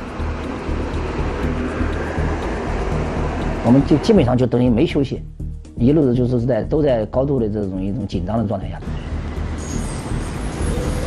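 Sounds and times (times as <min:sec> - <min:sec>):
high-speed train: 0:00.0 - 0:04.4, 0:08.9 - 0:11.0
speech: 0:03.7 - 0:09.0.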